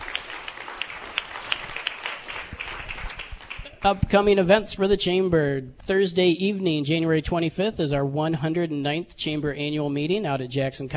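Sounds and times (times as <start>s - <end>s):
audience applause: 0.0s - 3.9s
speech: 3.8s - 10.9s.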